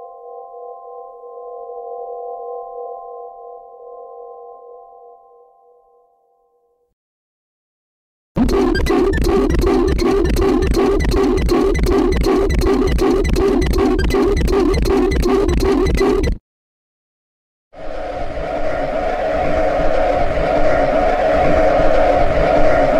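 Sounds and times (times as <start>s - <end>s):
scary horror sound effects: 8.4s - 16.4s, 17.8s - 22.9s.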